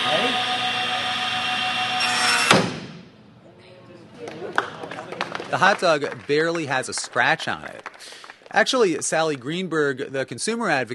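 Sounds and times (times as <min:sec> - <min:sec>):
table saw whining: 0:00.0 - 0:02.7
table saw blade slamming to a stop with a sharp bang: 0:02.0 - 0:03.1
speech: 0:05.5 - 0:10.9.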